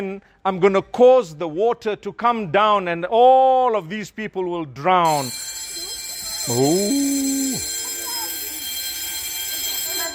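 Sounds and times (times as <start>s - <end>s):
speech: 0.0s - 5.6s, 6.4s - 7.8s
bell ringing: 5.1s - 10.1s.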